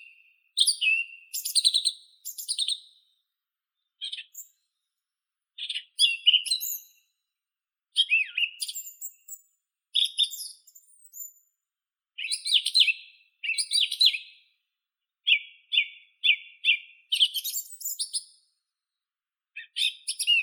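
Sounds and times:
song thrush Turdus philomelos singing: 0.0 - 3.1, 3.8 - 4.8, 5.6 - 7.0, 7.9 - 11.4, 12.2 - 14.4, 15.2 - 18.4, 19.6 - 20.4.

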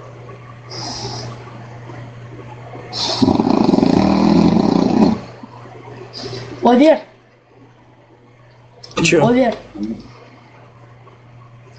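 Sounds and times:
fart: 3.0 - 5.3
speech: 6.6 - 7.1, 9.0 - 10.1.

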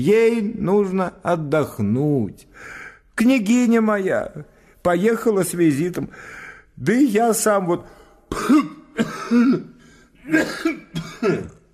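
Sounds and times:
speech: 0.0 - 9.7, 10.3 - 11.5
man acting out a prince's coughing in a Russian story reading: 8.3 - 11.7.

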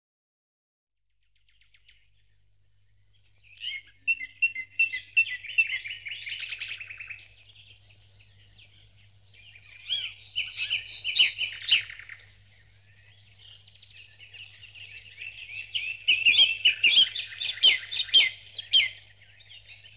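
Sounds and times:
birds in a dawn chorus twittering and trilling: 3.0 - 19.9.

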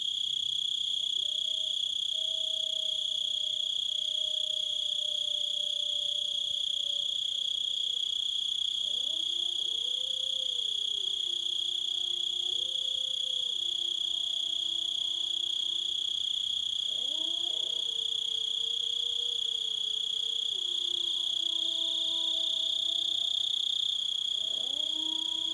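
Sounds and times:
cricket trilling: 0.1 - 25.5.

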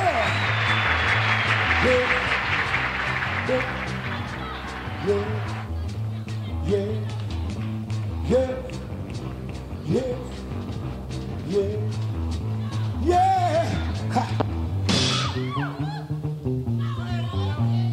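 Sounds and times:
audience applause at a live show: 0.0 - 5.7
bass-heavy music with sliding low notes: 0.0 - 17.9.

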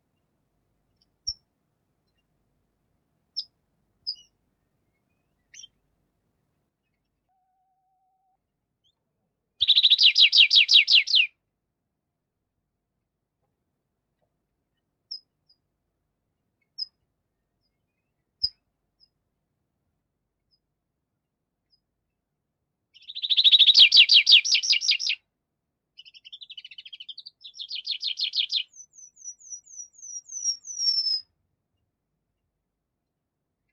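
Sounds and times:
Tree Pipit song: 2.0 - 2.3, 3.4 - 5.9, 6.7 - 11.3, 14.2 - 15.7, 16.6 - 19.2, 22.9 - 25.3, 25.9 - 33.7.

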